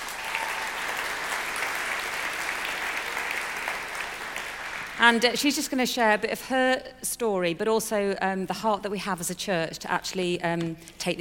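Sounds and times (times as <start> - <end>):
audience applause: 0.0 - 5.0
speech: 5.0 - 11.1.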